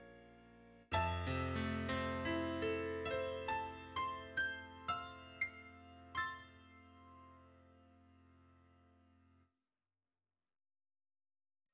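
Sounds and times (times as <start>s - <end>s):
piano melody: 0.0s - 8.2s.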